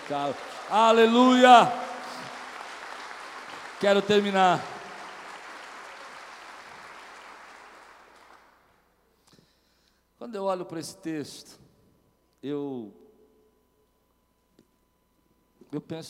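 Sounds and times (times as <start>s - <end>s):
audience applause: 0.0s - 8.6s
speech: 0.1s - 1.9s, 3.8s - 4.7s, 10.2s - 11.6s, 12.4s - 13.0s, 15.7s - 16.0s.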